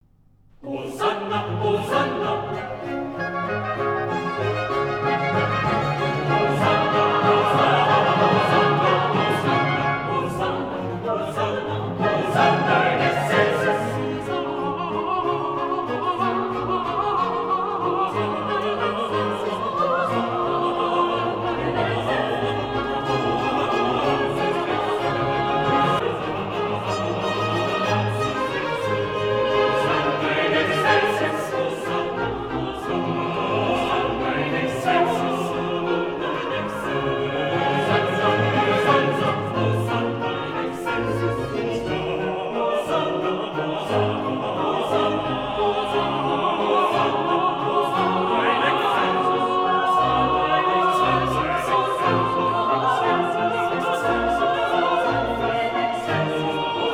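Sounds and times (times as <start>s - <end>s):
choir singing: 0.6s - 56.9s.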